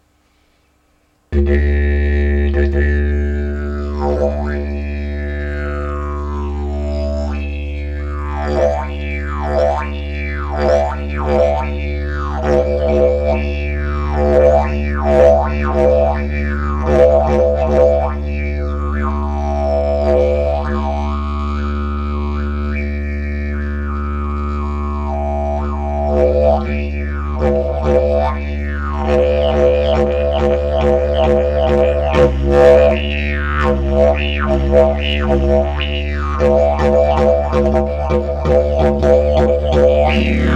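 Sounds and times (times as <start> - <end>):
bamboo didgeridoo: 1.4 - 40.5.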